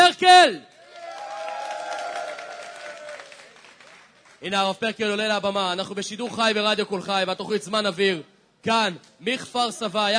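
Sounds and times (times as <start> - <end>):
speech: 0.4 - 0.7, 4.4 - 10.1
applause: 0.7 - 4.6.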